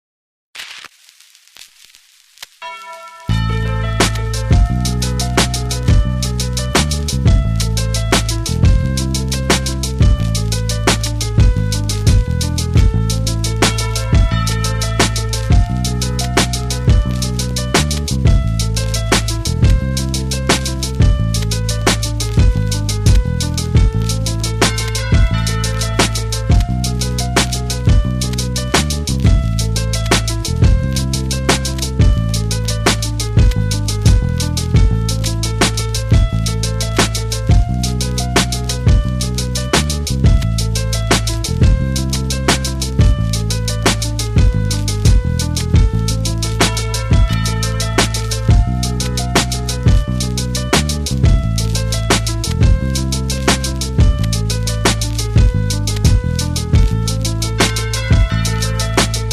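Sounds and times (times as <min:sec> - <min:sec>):
instrumental music: 0:02.6 - 0:59.3.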